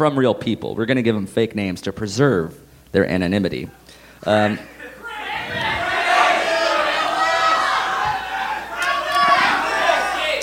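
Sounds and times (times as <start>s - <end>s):
speech: 0.0s - 4.7s
live audience shouting and chanting a name: 4.6s - 10.4s.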